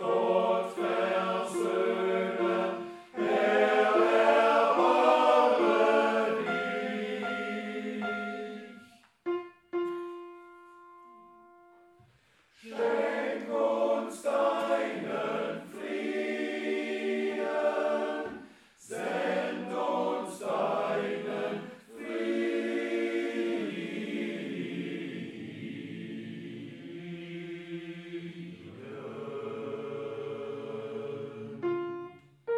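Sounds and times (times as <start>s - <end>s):
choir and orchestra tutti singing a mass: 0.0s - 9.1s, 12.5s - 32.4s.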